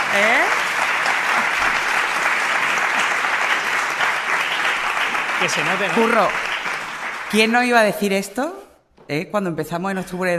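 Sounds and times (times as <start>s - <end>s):
audience applause: 0.0s - 7.8s
speech: 0.1s - 0.6s, 5.4s - 6.5s, 7.3s - 10.3s.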